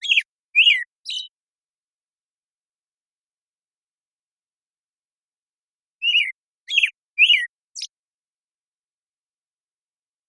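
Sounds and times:
American Robin caroling: 0.0 - 1.4, 6.0 - 8.0.

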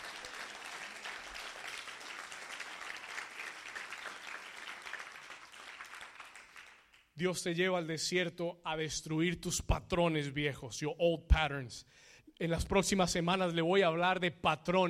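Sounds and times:
crowd applause: 0.0 - 7.0
speech: 7.2 - 14.8.

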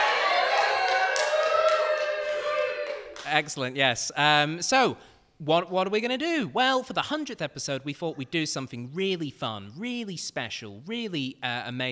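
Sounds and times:
live audience clapping: 0.0 - 3.8
speech: 3.3 - 11.9.

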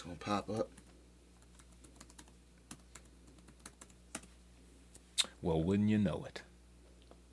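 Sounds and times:
speech: 0.0 - 0.8, 5.4 - 6.5
typing on a computer keyboard: 0.6 - 4.3.

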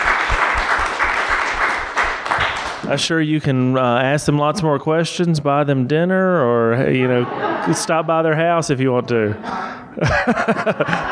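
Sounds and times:
audience applause: 0.0 - 2.9
speech: 2.9 - 11.1
laughter: 6.7 - 11.1.

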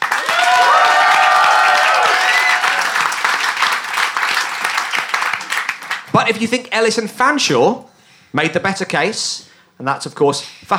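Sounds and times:
live audience applauding: 0.0 - 6.1
speech: 6.2 - 10.7.

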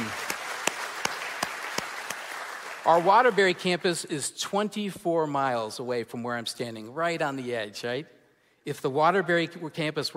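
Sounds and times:
sharp hand claps: 0.0 - 3.5
crowd applauding: 0.0 - 3.7
speech: 2.9 - 10.1.

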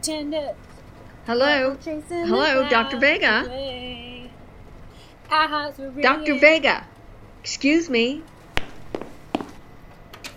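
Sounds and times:
speech: 0.0 - 4.0, 5.3 - 6.9, 7.5 - 8.3
knocking on a door: 8.6 - 9.6.

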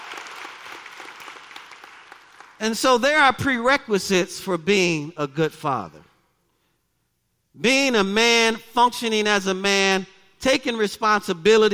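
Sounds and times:
audience applause: 0.0 - 2.6
speech: 2.6 - 6.1, 7.6 - 11.7.

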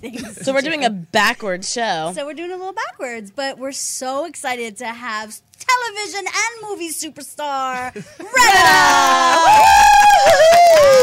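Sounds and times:
speech: 0.0 - 11.0
studio audience applause: 8.7 - 11.0.

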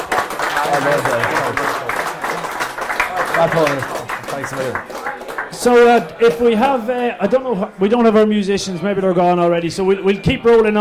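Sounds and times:
audience applause: 0.0 - 7.0
speech: 0.7 - 1.8, 3.4 - 5.0, 5.6 - 10.8.

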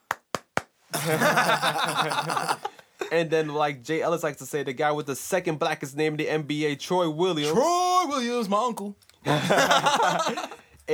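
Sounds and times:
one person clapping hands: 0.0 - 2.6
laughter: 1.0 - 2.8, 9.3 - 10.6
speech: 1.0 - 10.9.

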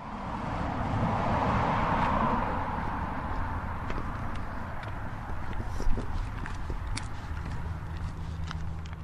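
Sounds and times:
passing traffic noise: 0.0 - 9.0
footsteps of one person walking outdoors: 1.9 - 9.0.

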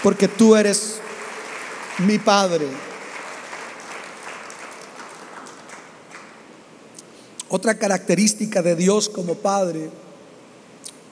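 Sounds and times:
speech: 0.0 - 1.1, 2.0 - 2.9, 7.5 - 10.0
audience applause: 0.0 - 6.4.

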